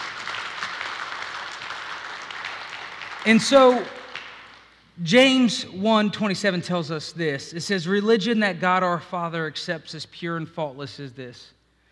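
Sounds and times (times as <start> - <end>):
audience applause: 0.0 - 4.7
speech: 3.2 - 4.0, 5.0 - 11.6.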